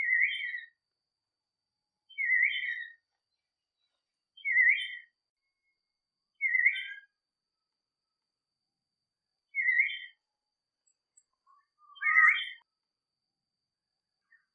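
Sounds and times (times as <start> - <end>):
person singing: 0.0 - 0.8, 2.1 - 7.2, 9.5 - 10.2, 10.8 - 12.7.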